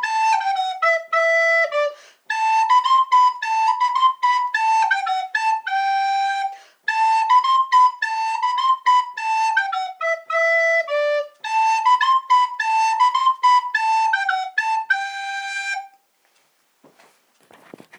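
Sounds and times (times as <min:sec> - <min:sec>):
flute: 0:00.0 - 0:16.0.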